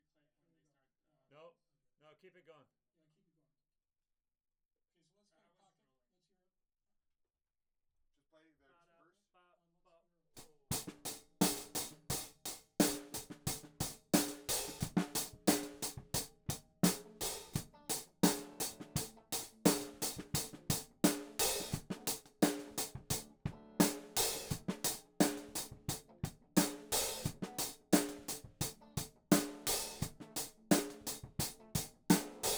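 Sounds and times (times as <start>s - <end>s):
hi-hat: 10.7s - 26.0s, 26.6s - 32.5s.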